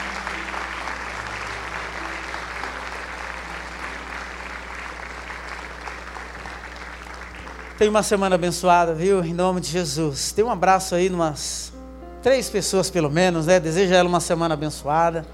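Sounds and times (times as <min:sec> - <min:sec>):
audience clapping: 0:00.0 - 0:08.4
speech: 0:07.8 - 0:15.3.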